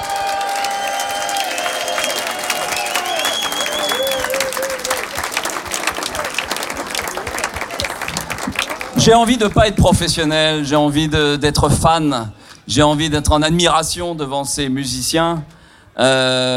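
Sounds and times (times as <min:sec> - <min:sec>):
audience applause: 0:00.0 - 0:10.4
speech: 0:09.0 - 0:16.5.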